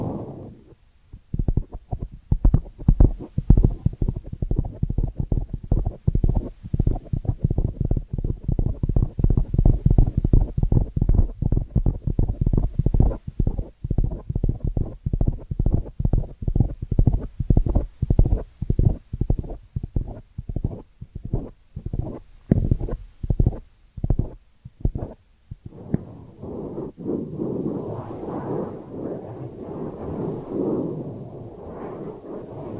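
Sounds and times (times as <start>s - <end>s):
soft rubbing hiss: 0.0s - 32.7s
ear cleaning scratchy strokes: 19.3s - 32.7s.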